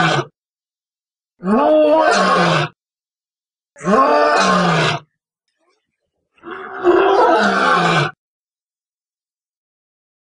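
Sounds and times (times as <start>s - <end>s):
lion roaring with grunts and long powerful roars: 0.0s - 0.3s, 1.4s - 2.8s, 3.8s - 5.1s, 6.4s - 8.2s.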